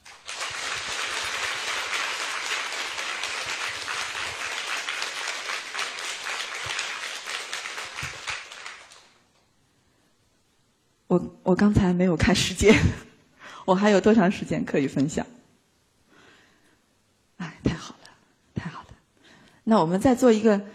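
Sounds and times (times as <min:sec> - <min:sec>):
audience applause: 0:00.0 - 0:09.2
speech: 0:11.1 - 0:13.1, 0:13.7 - 0:15.4, 0:19.7 - 0:20.7.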